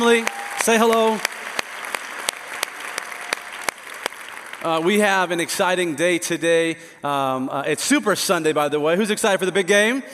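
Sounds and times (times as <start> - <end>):
speech: 0.0 - 1.3, 4.6 - 10.1
church congregation applauding: 0.0 - 5.7.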